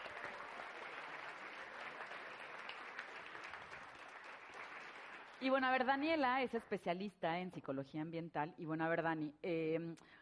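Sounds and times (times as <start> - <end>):
audience applause: 0.0 - 5.5
speech: 5.4 - 10.2.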